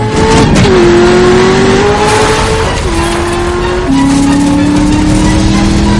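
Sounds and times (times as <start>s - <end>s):
car engine accelerating hard during a chase across a cornfield: 0.0s - 5.9s.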